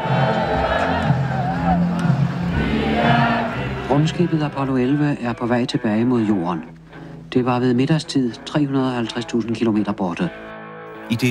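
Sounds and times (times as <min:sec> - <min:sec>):
celebrating crowd shouting in the streets of Copenhagen: 0:00.0 - 0:03.9
speech: 0:04.0 - 0:10.5, 0:11.1 - 0:11.2.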